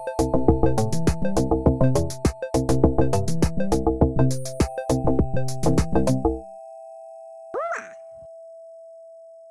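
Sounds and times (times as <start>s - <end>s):
slow funk music: 0.2s - 6.4s.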